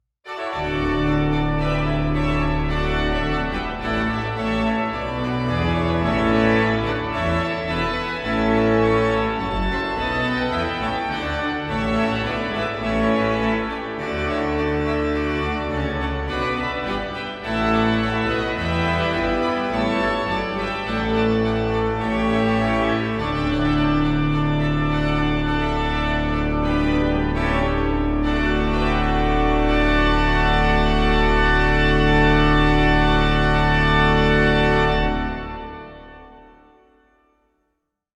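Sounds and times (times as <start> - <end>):
Christmas music greeting: 0.3 - 37.2.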